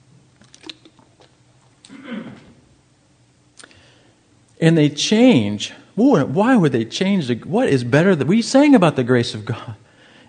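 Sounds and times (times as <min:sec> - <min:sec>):
faint lip smacking: 0:00.4 - 0:02.0, 0:03.6 - 0:03.8
small wet mouth clicks while sipping water: 0:00.4 - 0:02.0, 0:03.6 - 0:03.8
person gulping and swallowing water: 0:00.4 - 0:02.6
speech: 0:04.6 - 0:10.2.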